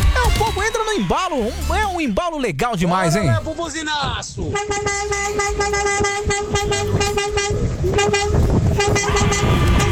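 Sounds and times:
speech: 1.0s - 9.9s
traffic rumble: 3.0s - 9.9s
car horns honking at a drive-by horn-honking event: 4.4s - 9.9s.

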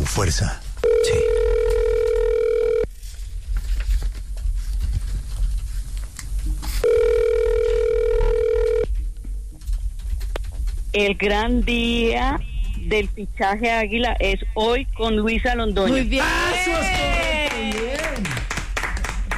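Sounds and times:
low rumbling noise: 0.0s - 19.3s
speech: 0.2s - 1.3s, 11.0s - 17.3s
telephone call ringing on the line: 0.8s - 2.9s, 6.8s - 8.9s.

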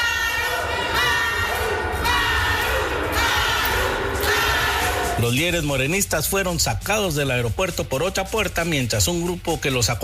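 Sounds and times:
protesters shouting and chanting at airport: 0.0s - 6.5s
speech: 5.2s - 10.0s.

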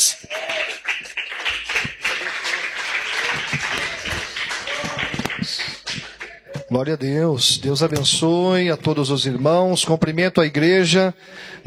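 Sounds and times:
audience applauding to welcome pastor: 0.0s - 6.5s
speech: 6.7s - 11.6s.

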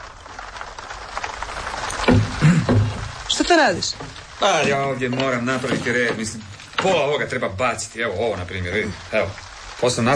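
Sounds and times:
heavy rain: 0.0s - 10.1s
speech: 3.6s - 10.1s.

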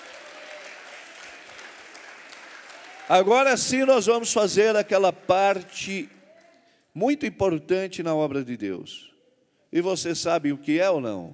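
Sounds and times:
audience applauding: 0.0s - 6.5s
speech: 3.1s - 6.2s, 7.0s - 9.1s, 9.7s - 11.3s.

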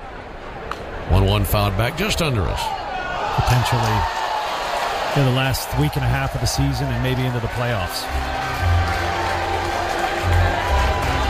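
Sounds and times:
stadium crowd cheering a great catch: 0.0s - 11.2s
speech: 1.1s - 2.8s, 3.4s - 4.2s, 5.2s - 8.4s.

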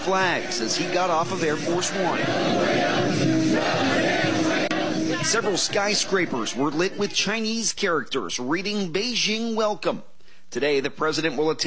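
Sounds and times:
speech: 0.0s - 4.1s, 5.2s - 11.6s
hundreds of Chinese men and women chanting in unison: 0.0s - 7.2s.

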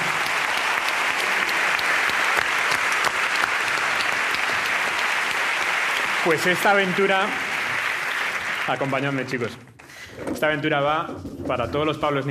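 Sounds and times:
audience applause: 0.0s - 9.8s
speech: 6.2s - 7.5s, 8.7s - 12.2s.

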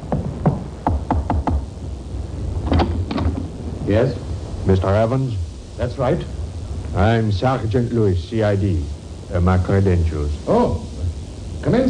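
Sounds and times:
low rumble: 0.0s - 11.8s
knocking on a wooden door: 0.1s - 1.7s
speech: 3.9s - 10.9s, 11.6s - 11.8s.

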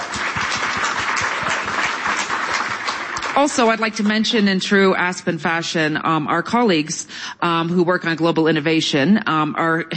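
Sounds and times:
audience applause: 0.0s - 3.8s
speech: 3.4s - 9.9s.

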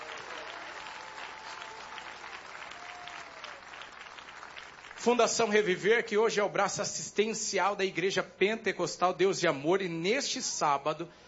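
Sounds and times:
audience applause: 0.0s - 5.2s
speech: 5.0s - 11.2s.

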